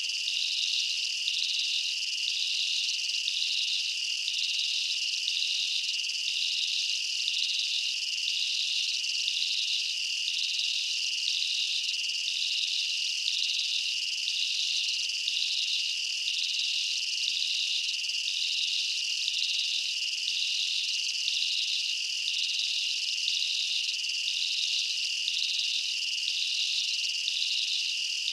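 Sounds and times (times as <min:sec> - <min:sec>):
insects chirping in a jungle at night: 0:00.1 - 0:28.3.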